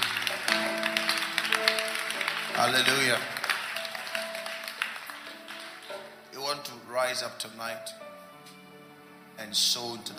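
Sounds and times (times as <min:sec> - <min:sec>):
audience clapping: 0:00.0 - 0:06.3
speech: 0:02.6 - 0:03.4, 0:07.1 - 0:08.0, 0:09.4 - 0:10.1.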